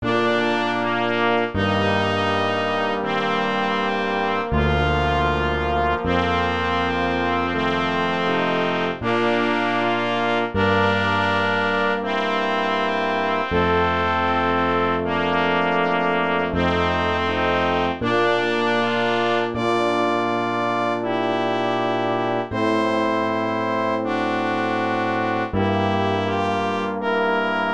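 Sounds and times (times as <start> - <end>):
brass playing: 0.0 - 27.7.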